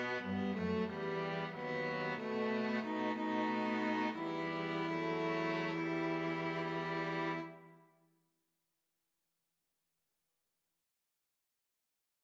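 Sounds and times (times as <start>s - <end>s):
string quartet: 0.0s - 7.7s.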